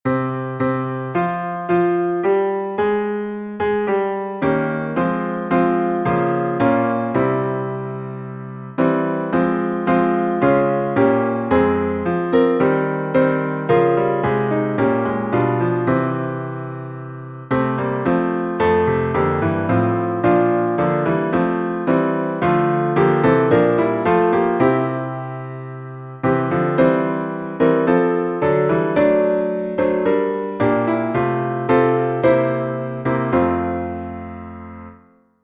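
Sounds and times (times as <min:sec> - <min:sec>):
instrumental psalm music: 0:00.1 - 0:35.0.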